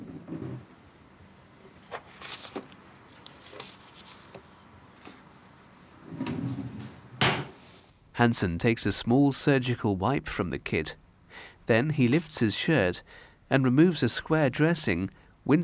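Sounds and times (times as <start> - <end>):
drawer opening: 0.0 - 0.7, 6.0 - 7.6
speech: 8.2 - 15.6.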